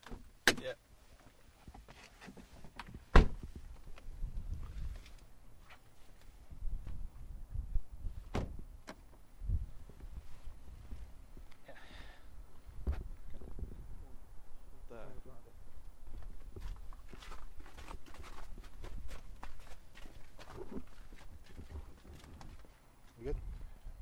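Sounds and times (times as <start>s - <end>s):
low rumble of wind on a cold windy day: 3.0s - 5.5s, 6.4s - 11.5s, 12.2s - 24.0s
footsteps walking outside between parked cars: 16.1s - 23.2s.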